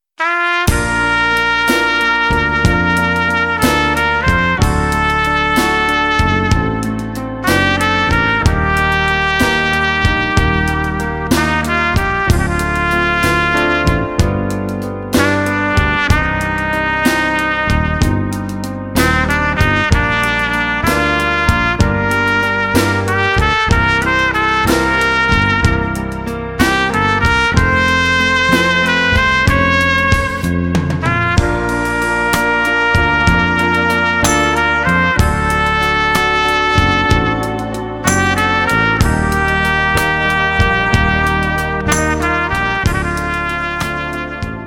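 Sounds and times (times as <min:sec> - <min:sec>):
trumpet: 0:00.0 - 0:44.6.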